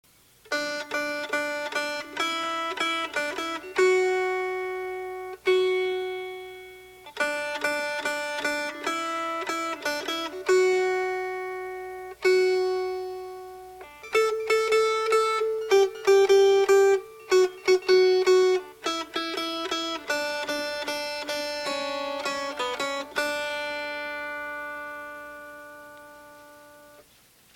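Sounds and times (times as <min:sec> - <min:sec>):
melody: 0:00.5 - 0:27.0.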